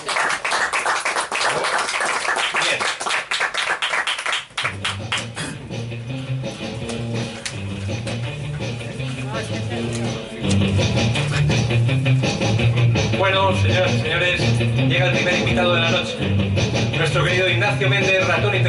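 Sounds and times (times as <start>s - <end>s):
crowd applause: 0.0s - 5.4s
music: 3.9s - 18.6s
speech: 13.7s - 16.3s.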